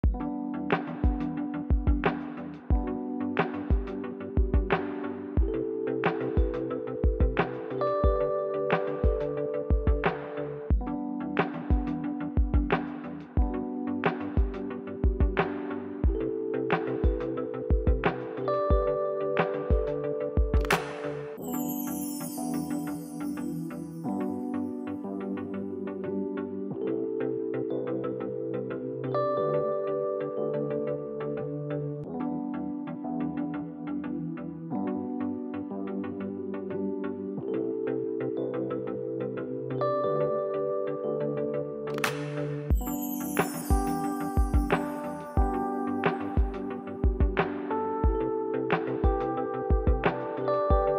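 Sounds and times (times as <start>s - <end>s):
podcast background music: 0.0s - 50.9s.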